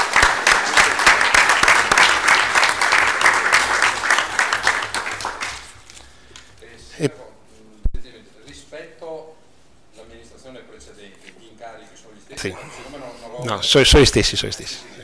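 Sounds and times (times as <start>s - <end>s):
applause: 0.0s - 6.5s
speech: 7.0s - 7.2s, 13.6s - 14.9s.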